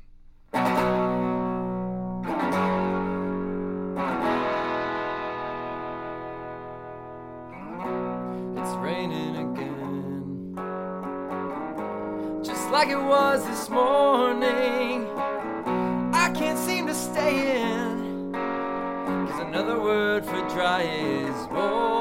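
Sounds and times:
solo electric guitar playing with distortion and effects: 0:00.0 - 0:21.9
speech: 0:12.8 - 0:15.2, 0:16.4 - 0:18.0, 0:19.4 - 0:21.9.

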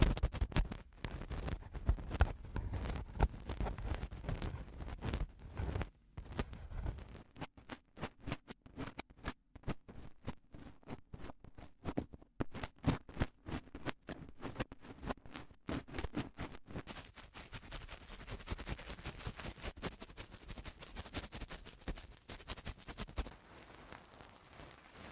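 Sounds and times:
crackly clicks and scratches of eardrum cleaning: 0:00.0 - 0:25.1.

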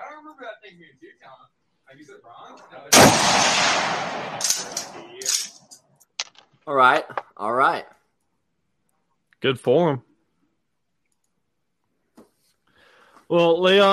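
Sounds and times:
speech: 0:00.4 - 0:05.4, 0:06.6 - 0:08.0, 0:09.4 - 0:10.1, 0:13.3 - 0:13.9
gunshot: 0:02.9 - 0:05.2.

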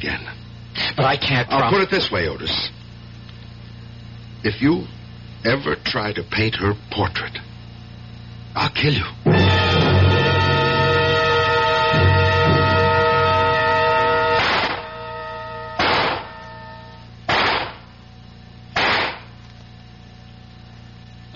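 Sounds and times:
speech: 0:00.0 - 0:02.8, 0:04.4 - 0:07.5, 0:08.5 - 0:09.4
music: 0:09.3 - 0:17.0
gunshots at a shooting range: 0:14.4 - 0:14.9, 0:15.8 - 0:16.4, 0:17.3 - 0:17.9, 0:18.8 - 0:19.3.

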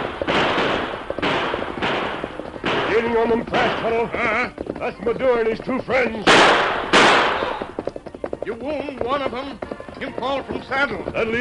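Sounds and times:
gunshots during horseback chase: 0:00.0 - 0:04.3, 0:06.2 - 0:07.8
faint rhythmic patter: 0:00.0 - 0:11.3
speech: 0:03.0 - 0:06.9, 0:08.5 - 0:11.3.

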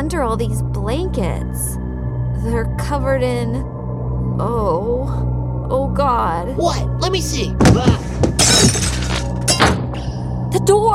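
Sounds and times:
speech: 0:00.2 - 0:01.8, 0:02.4 - 0:09.0, 0:10.5 - 0:10.9
lamp crashing and shattering: 0:07.6 - 0:09.9
scattered tinkling fragments of breaking glass: 0:08.4 - 0:09.6.

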